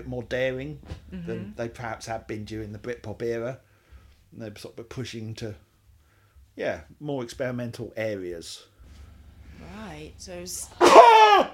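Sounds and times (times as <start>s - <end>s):
speech: 0.0s - 3.7s, 4.3s - 5.7s, 6.6s - 8.7s, 9.6s - 11.5s
person sneezing: 10.8s - 11.5s.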